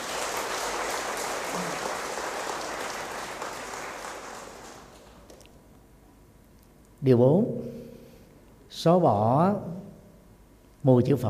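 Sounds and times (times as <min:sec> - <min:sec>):
audience applause: 0:00.0 - 0:05.3
speech: 0:07.0 - 0:07.8, 0:08.7 - 0:09.8, 0:10.8 - 0:11.2.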